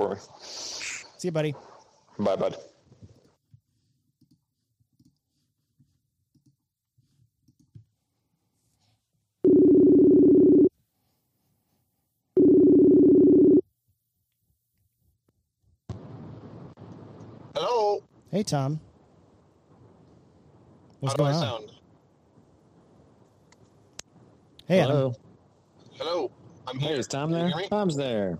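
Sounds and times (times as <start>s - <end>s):
speech: 0.0s - 2.7s, 17.6s - 18.9s, 21.0s - 21.7s, 24.7s - 25.2s, 26.0s - 28.3s
outgoing phone call ringing tones: 9.4s - 10.7s, 12.4s - 13.6s
faint clicks: 23.2s - 24.7s.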